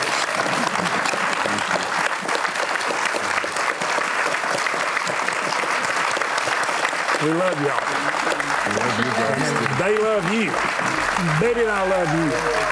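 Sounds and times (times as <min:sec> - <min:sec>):
audience applause of appreciation for a couple: 0:00.0 - 0:12.7
laughter: 0:00.3 - 0:02.1, 0:07.2 - 0:12.7
speech: 0:07.2 - 0:12.7.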